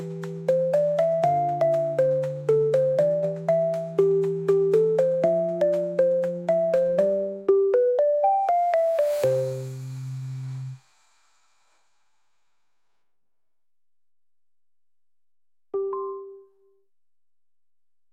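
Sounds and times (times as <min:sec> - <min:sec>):
chiptune music: 0:00.0 - 0:09.8, 0:15.8 - 0:16.7.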